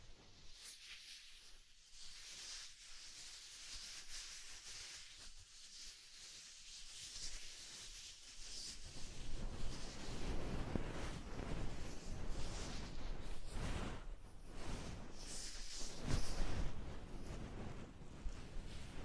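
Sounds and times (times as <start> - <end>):
soft fluffy ASMR triggers rubbing and brushing: 0.4 - 19.0.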